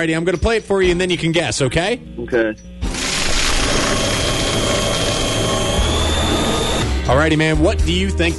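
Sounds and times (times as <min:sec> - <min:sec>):
speech: 0:00.0 - 0:02.8, 0:07.1 - 0:08.3
paper shredder shredding paper: 0:02.9 - 0:06.9.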